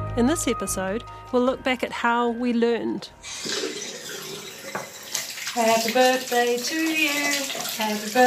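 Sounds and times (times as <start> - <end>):
speech: 0.2 - 3.6, 5.6 - 8.2
tap water running while hands are washed: 3.2 - 8.2
person singing: 5.6 - 8.2.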